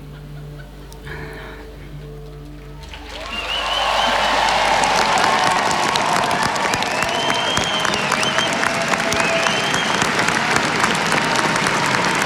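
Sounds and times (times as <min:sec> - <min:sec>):
crowd applause on Národní třída in Prague: 0:02.3 - 0:12.2.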